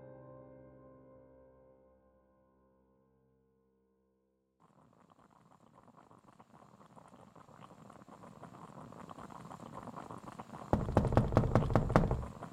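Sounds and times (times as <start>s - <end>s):
sharp knocks on a door: 10.8s - 12.4s.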